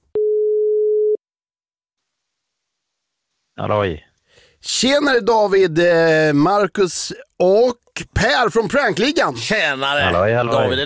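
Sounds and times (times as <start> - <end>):
telephone ringing tone after dialling a number: 0.2 - 1.2
speech: 3.6 - 10.8.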